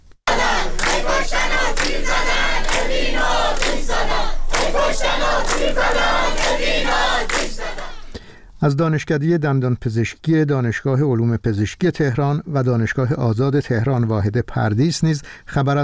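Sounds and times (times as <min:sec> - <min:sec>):
protesting students chanting slogans: 0:00.3 - 0:08.1
speech: 0:01.2 - 0:07.9, 0:08.6 - 0:15.8.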